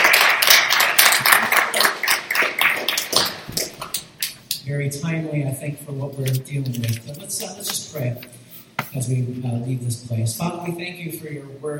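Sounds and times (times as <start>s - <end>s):
audience applauding: 0.0s - 4.0s
speech: 4.7s - 11.7s.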